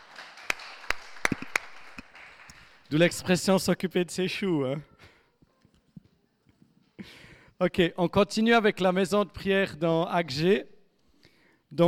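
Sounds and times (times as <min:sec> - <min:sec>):
audience applause: 0:00.0 - 0:02.9
speech: 0:02.9 - 0:04.9, 0:07.6 - 0:10.7.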